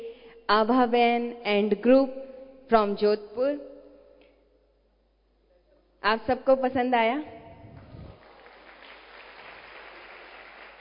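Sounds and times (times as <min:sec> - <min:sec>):
speech: 0:00.5 - 0:03.7, 0:06.0 - 0:07.4
audience applause: 0:07.8 - 0:10.7.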